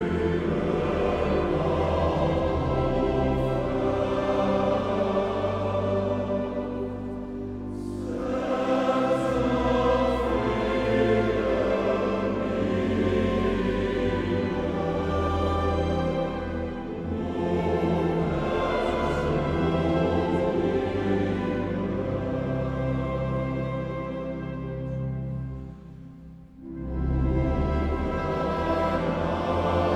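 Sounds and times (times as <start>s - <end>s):
mixed choir singing: 0.0s - 25.4s, 26.6s - 29.9s.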